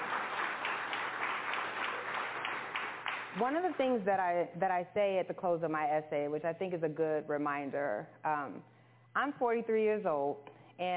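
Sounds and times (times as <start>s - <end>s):
audience applause: 0.0s - 3.8s
speech: 3.4s - 10.9s.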